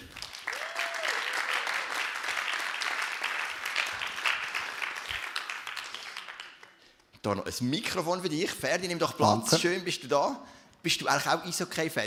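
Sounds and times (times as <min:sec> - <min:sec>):
crowd applause: 0:00.0 - 0:06.7
speech: 0:07.2 - 0:12.0.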